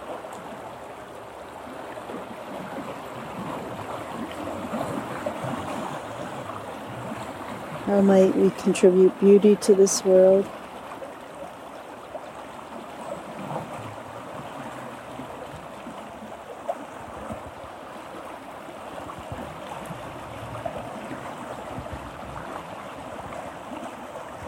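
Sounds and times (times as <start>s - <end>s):
flowing river water: 0.0s - 24.4s
speech: 7.9s - 10.6s.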